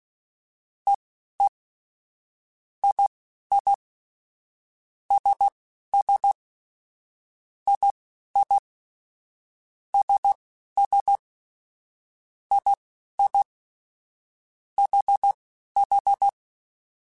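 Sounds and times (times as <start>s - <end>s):
morse code beeps: 2.8s - 3.8s, 5.1s - 6.4s, 7.7s - 8.6s, 10.0s - 11.2s, 12.5s - 13.5s, 14.8s - 16.4s.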